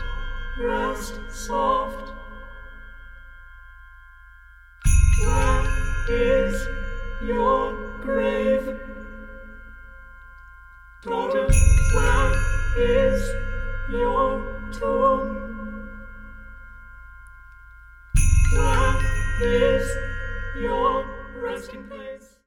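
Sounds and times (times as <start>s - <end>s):
four voices singing: 0.0s - 2.5s, 5.1s - 9.6s, 11.0s - 16.3s, 18.4s - 22.4s
percussion: 0.0s - 22.4s.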